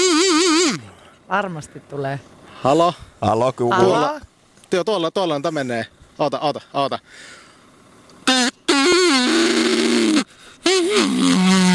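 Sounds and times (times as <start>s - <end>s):
duck call blasts: 0.0s - 0.8s, 8.2s - 11.7s
speech: 1.3s - 7.4s, 10.9s - 11.7s.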